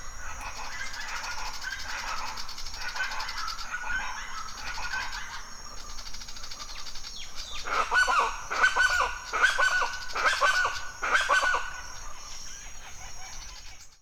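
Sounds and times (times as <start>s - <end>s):
chachalacas loud call at dawn in a forest in Mexico: 0.0s - 14.0s.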